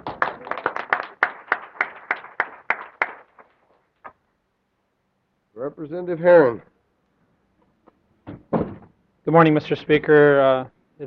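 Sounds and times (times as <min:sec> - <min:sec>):
applause welcoming a guest in the gallery: 0:00.0 - 0:04.2
speech: 0:05.6 - 0:06.7, 0:09.3 - 0:11.0.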